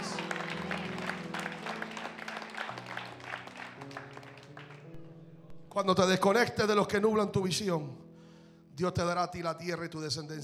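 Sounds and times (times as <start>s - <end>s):
audience applauding: 0.0s - 5.0s
speech: 5.8s - 8.0s, 8.8s - 10.4s.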